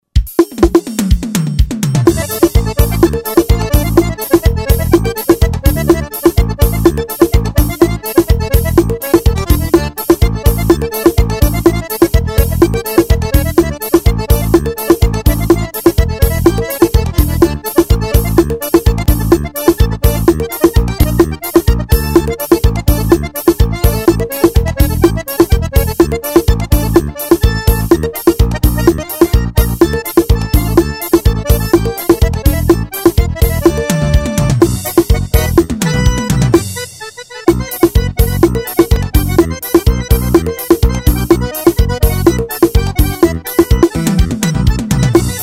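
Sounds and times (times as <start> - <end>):
vaneirao music: 0.0 - 45.4.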